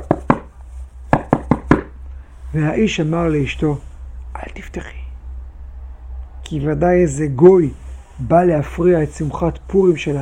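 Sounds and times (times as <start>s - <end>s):
knocking on a door: 0.0s - 0.5s, 1.1s - 1.9s
speech: 2.5s - 5.0s, 6.5s - 10.1s.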